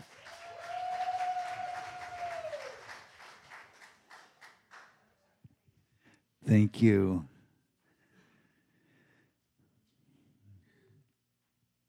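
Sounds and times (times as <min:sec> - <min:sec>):
audience applause: 0:00.0 - 0:05.0
speech: 0:06.5 - 0:07.3.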